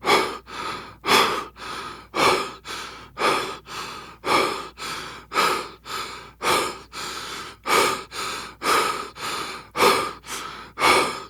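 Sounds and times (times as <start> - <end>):
breathing while running: 0.0 - 11.2.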